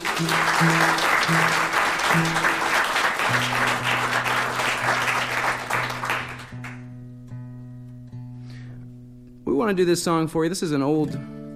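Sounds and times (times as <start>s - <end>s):
audience applause at a live music show: 0.0s - 6.8s
speech: 0.2s - 2.6s, 3.3s - 4.1s, 9.7s - 11.4s.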